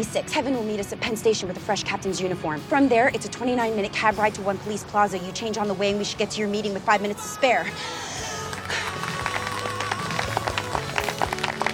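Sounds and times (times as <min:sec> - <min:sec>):
speech: 0:00.0 - 0:08.2
people clapping: 0:08.3 - 0:11.7.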